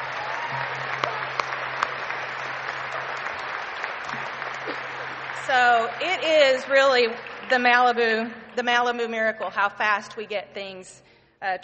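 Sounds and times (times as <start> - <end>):
audience applause: 0.0 - 7.9
speech: 5.5 - 11.6.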